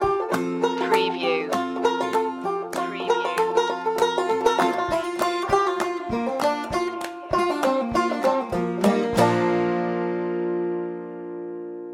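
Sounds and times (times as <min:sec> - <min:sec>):
barnwood banjo: 0:00.0 - 0:11.9.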